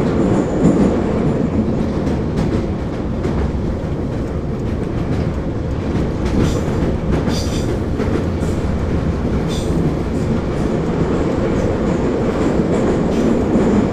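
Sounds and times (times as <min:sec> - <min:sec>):
metro train: 0:00.0 - 0:13.9.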